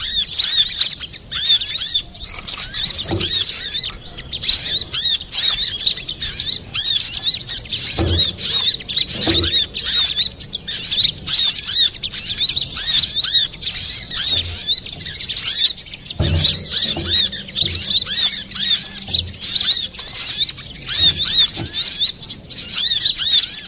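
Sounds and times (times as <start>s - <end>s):
little spiderhunter singing: 0.0s - 23.6s
low knocks: 2.5s - 4.9s, 7.8s - 9.8s, 16.1s - 22.0s.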